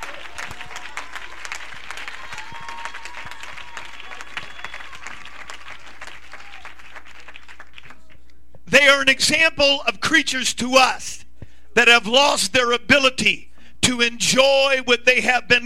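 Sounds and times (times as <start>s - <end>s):
audience clapping: 0.0s - 8.3s
speech: 8.8s - 11.2s, 11.8s - 15.6s.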